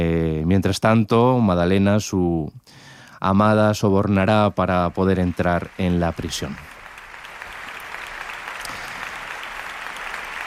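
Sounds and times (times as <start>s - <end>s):
speech: 0.5s - 6.7s
audience applause at opera gala: 4.8s - 10.4s.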